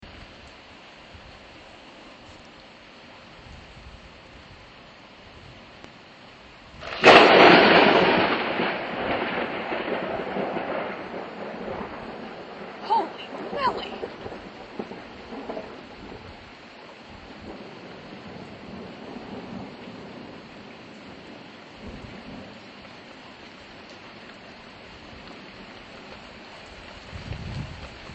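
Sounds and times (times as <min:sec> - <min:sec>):
massive thunderstorm: 0:06.8 - 0:22.6.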